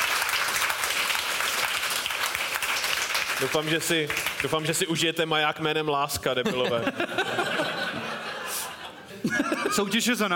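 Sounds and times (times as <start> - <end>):
audience applause: 0.0 - 4.8
speech: 3.4 - 7.7, 9.2 - 10.3
laughter: 6.2 - 10.3.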